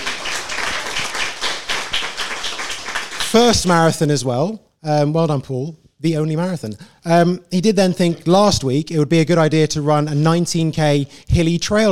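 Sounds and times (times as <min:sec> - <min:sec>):
audience round of applause: 0:00.0 - 0:03.7
speech: 0:03.3 - 0:11.8.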